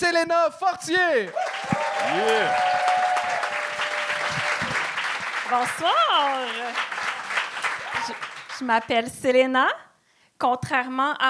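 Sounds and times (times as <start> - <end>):
speech: 0.0 - 2.8, 5.5 - 6.9, 8.0 - 9.8, 10.4 - 11.2
crowd applause: 1.2 - 8.9.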